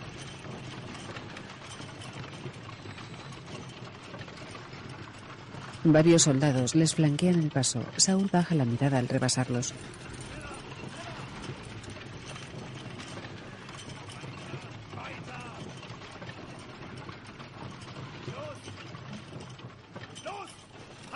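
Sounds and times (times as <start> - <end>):
wooden cart rumbling as prisoners push it in a Holocaust camp: 0.0 - 21.1
speech: 5.8 - 10.2.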